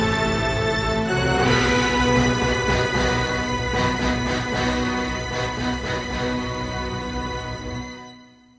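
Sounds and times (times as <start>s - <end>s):
solemn tragic atmosphere music: 0.0s - 8.5s.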